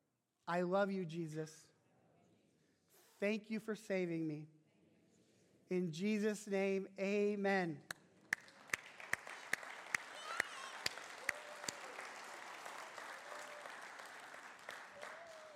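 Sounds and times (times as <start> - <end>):
speech: 0.5 - 1.7, 3.2 - 4.6, 5.7 - 7.9
audience clapping: 7.9 - 15.5.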